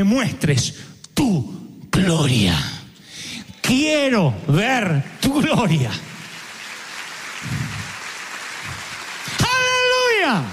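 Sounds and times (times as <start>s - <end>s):
speech: 0.0s - 2.8s, 3.7s - 6.1s, 10.2s - 10.5s
audience clapping: 4.5s - 10.5s.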